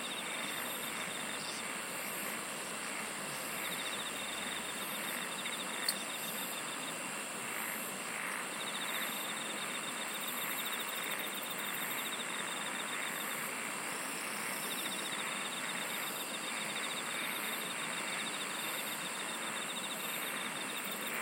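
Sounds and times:
high hum and hiss: 0:00.0 - 0:21.1
insect chorus: 0:00.0 - 0:21.1.

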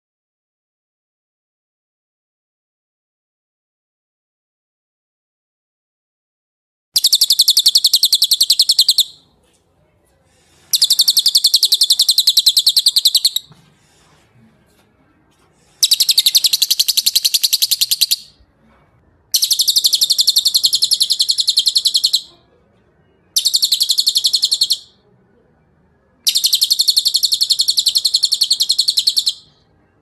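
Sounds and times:
bird trilling: 0:07.0 - 0:09.2, 0:10.7 - 0:13.5, 0:15.8 - 0:18.4, 0:19.4 - 0:22.4, 0:23.4 - 0:25.0, 0:26.2 - 0:29.6.

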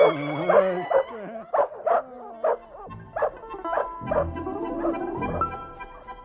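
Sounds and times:
dogs barking and yelping during a chase: 0:00.0 - 0:05.8.

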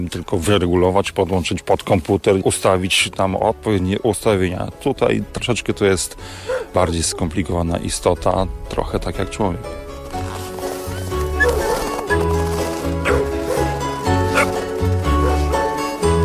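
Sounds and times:
speech: 0:00.0 - 0:09.8
several husky dogs barking and yipping: 0:06.2 - 0:07.4, 0:10.9 - 0:16.1
husky dogs with high whining cries: 0:06.4 - 0:07.3, 0:10.8 - 0:15.8.

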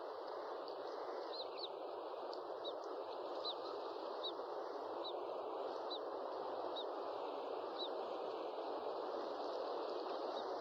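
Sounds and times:
owl hooting: 0:00.1 - 0:10.5.

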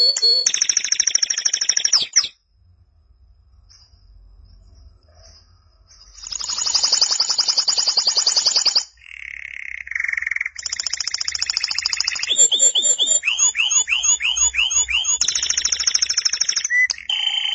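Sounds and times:
canary song: 0:00.0 - 0:02.4, 0:03.6 - 0:17.5
faint low hum: 0:02.3 - 0:06.4.

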